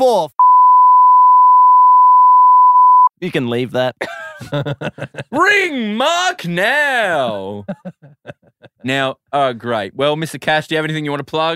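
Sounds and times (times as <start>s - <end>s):
speech: 0.0s - 0.4s, 3.2s - 11.5s
censor beep over phone number: 0.4s - 3.1s.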